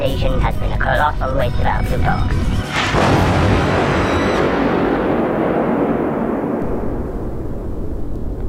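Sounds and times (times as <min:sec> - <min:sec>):
speech: 0:00.0 - 0:04.4
explosions from a ship being shot and destroyed: 0:02.6 - 0:08.4.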